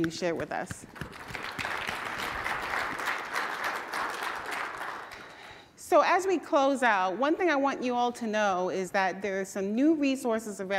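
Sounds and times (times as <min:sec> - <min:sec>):
speech: 0:00.0 - 0:01.4, 0:05.9 - 0:10.7
audience applause: 0:01.0 - 0:05.4.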